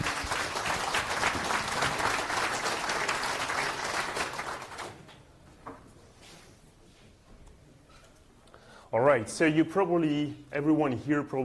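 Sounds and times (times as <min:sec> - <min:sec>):
audience applause: 0:00.0 - 0:05.1
speech: 0:09.2 - 0:11.4.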